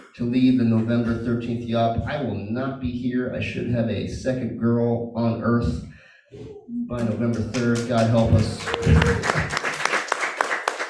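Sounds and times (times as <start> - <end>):
speech: 0.2 - 9.6
polite audience applause: 7.0 - 10.8.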